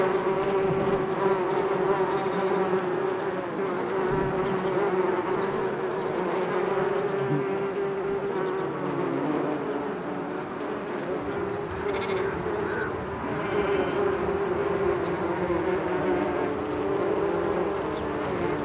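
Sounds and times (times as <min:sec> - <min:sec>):
bees humming: 0:00.0 - 0:18.6.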